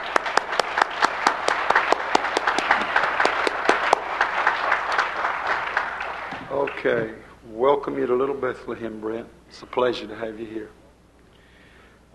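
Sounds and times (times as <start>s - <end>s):
congregation applauding at a church service: 0.0s - 7.2s
speech: 6.8s - 10.8s.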